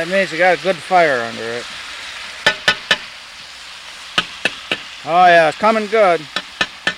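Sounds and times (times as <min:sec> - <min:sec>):
speech: 0:00.0 - 0:01.8, 0:05.0 - 0:06.4
fatback sizzling in a frying pan: 0:00.0 - 0:06.9.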